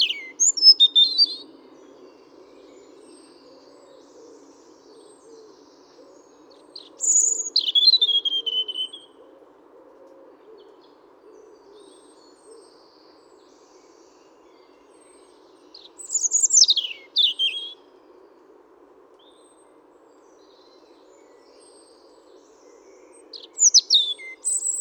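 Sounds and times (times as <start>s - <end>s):
European robin Erithacus rubecula singing: 0.0s - 1.4s, 6.8s - 9.1s, 15.7s - 17.8s, 23.2s - 24.7s.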